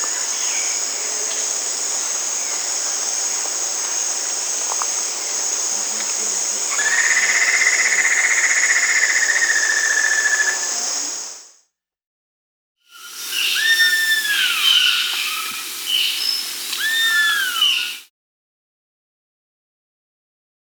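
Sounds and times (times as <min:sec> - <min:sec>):
White-necked Puffbird Notharchus ma calling in South America: 0:06.7 - 0:10.6, 0:12.9 - 0:18.1.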